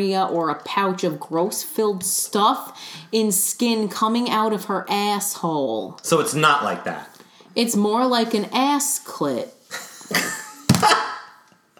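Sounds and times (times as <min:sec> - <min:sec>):
speech: 0:00.0 - 0:11.0
phone dropping and clattering: 0:10.7 - 0:11.0.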